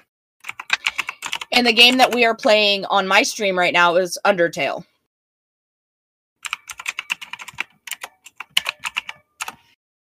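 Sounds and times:
typing a game name into Twitch on a computer keyboard: 0.4 - 2.3, 6.4 - 9.8
speech: 1.6 - 4.9.

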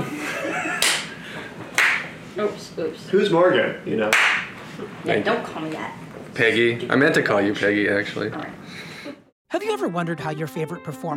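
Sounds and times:
laughter: 0.0 - 1.8
hand claps: 0.8 - 2.1, 4.1 - 4.5
speech: 2.4 - 8.9, 9.5 - 11.1.

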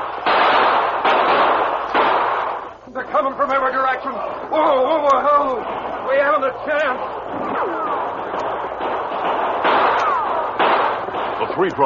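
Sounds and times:
gunfire sound effect in radio drama: 0.0 - 2.8, 5.4 - 11.8
speech: 3.2 - 8.1, 11.5 - 11.8.

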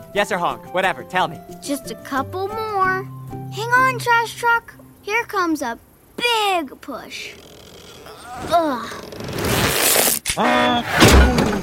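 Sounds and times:
speech: 0.1 - 7.5, 8.4 - 9.4, 10.4 - 11.6
swing rope snapping: 9.0 - 10.4.

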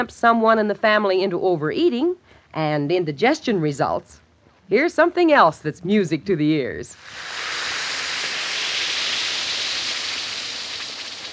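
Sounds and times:
speech: 0.0 - 7.5
Alka-Seltzer tablet fizzing in water: 7.0 - 11.3.

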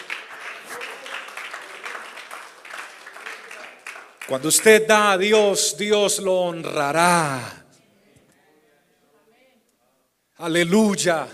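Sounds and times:
joyful applause: 0.0 - 5.2
speech: 4.3 - 7.6, 10.4 - 11.3.

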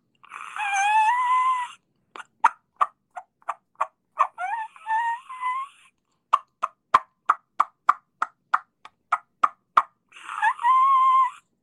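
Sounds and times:
diaphragm call imitating a turkey hen pits and squeal: 0.3 - 7.4, 9.8 - 11.6.

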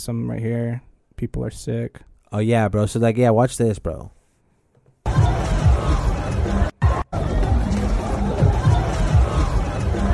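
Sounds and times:
speech: 0.0 - 4.2
crowd being trampled at fence: 5.0 - 10.1.

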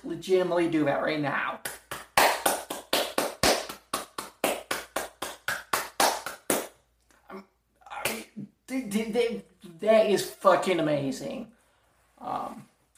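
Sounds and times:
speech: 0.1 - 1.7, 8.7 - 11.6, 12.2 - 12.7
people clapping: 1.6 - 6.8.

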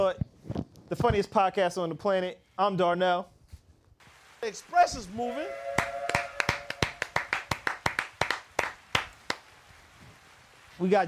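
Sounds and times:
speech: 0.1 - 0.3, 0.9 - 3.4, 4.4 - 6.0, 10.8 - 11.0
hand clapping: 5.8 - 9.4.

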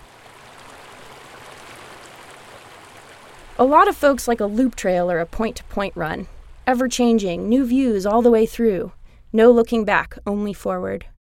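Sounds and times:
running water streaming from Diamond Lake: 0.0 - 9.0
speech: 3.6 - 11.1.

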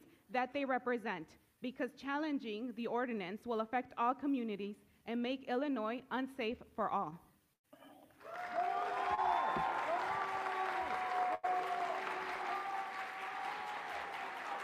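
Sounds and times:
speech: 0.3 - 7.3
audience clapping and applause: 8.2 - 14.6.

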